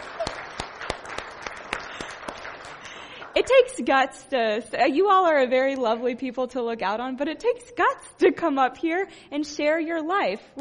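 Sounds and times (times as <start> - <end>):
crowd applauding: 0.0 - 3.8
speech: 3.4 - 10.5.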